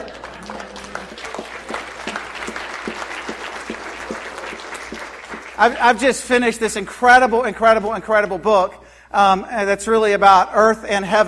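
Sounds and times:
audience applause: 0.0 - 6.0
speech: 5.6 - 11.2.

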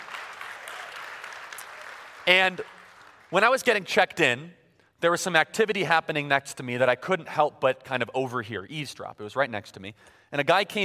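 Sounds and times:
audience applause: 0.0 - 3.3
speech: 2.3 - 10.8.

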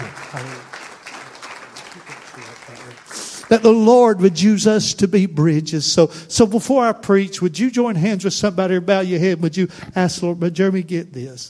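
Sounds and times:
low voices: 0.0 - 3.6
congregation clapping for a church member: 0.0 - 4.4
speech: 2.7 - 11.4.

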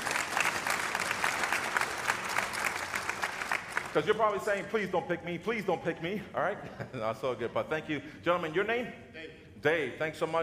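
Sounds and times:
audience round of applause: 0.0 - 4.4
speech: 3.9 - 10.4.

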